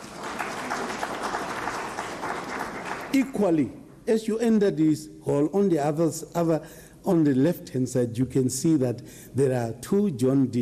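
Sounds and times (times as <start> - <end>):
audience applause in a hall: 0.0 - 3.3
speech: 3.1 - 10.5.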